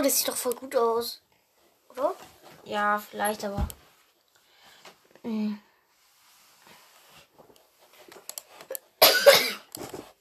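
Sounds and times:
speech: 0.0 - 1.2, 1.9 - 3.8, 5.2 - 5.7
person coughing: 9.0 - 9.7.

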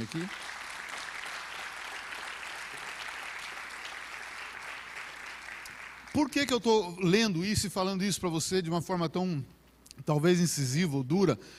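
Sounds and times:
speech: 0.0 - 0.5, 6.2 - 11.5
applause: 0.0 - 6.5.

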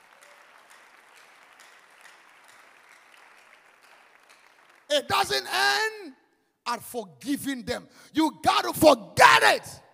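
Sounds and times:
audience clapping hands: 0.0 - 5.5
speech: 4.9 - 9.8.

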